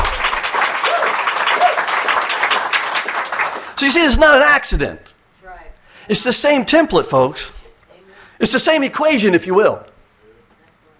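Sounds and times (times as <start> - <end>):
audience applauding: 0.0 - 4.4
speech: 3.8 - 5.2, 6.1 - 7.6, 8.4 - 9.9.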